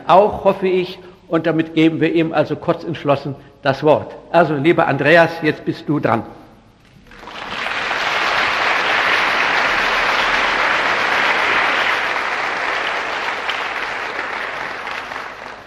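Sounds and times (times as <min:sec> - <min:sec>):
speech: 0:00.1 - 0:06.4
audience applause: 0:07.0 - 0:15.6.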